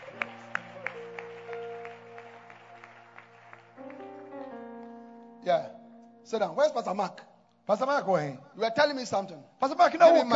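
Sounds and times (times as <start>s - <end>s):
audience clapping hands: 0.0s - 4.9s
speech: 5.4s - 10.3s.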